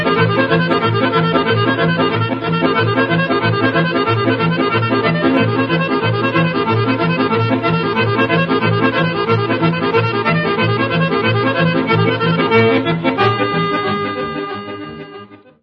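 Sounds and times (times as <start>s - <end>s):
accordion: 0.0s - 15.6s.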